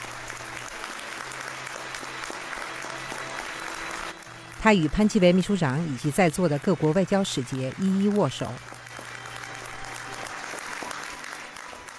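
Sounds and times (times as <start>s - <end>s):
warm applause in a conference hall: 0.0s - 11.9s
speech: 4.6s - 8.7s.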